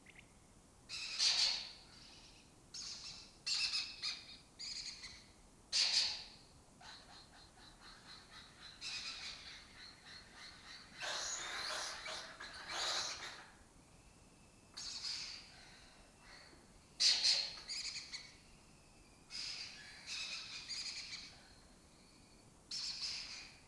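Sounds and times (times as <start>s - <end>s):
lesser kestrel colony calling: 0.9s - 13.6s, 14.8s - 18.4s, 19.3s - 21.4s.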